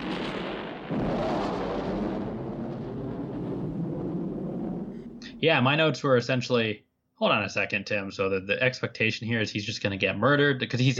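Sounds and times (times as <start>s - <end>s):
plane explosion: 0.0s - 5.4s
speech: 5.4s - 10.9s.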